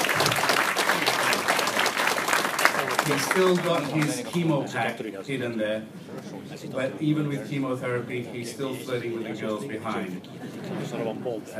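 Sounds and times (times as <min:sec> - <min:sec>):
audience applause at a corporate airline event: 0:00.0 - 0:04.6
speech: 0:03.1 - 0:11.5.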